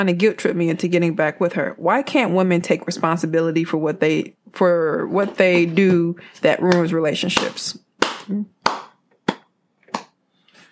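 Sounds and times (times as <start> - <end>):
speech: 0.0 - 8.8
hand clapping: 6.7 - 10.2.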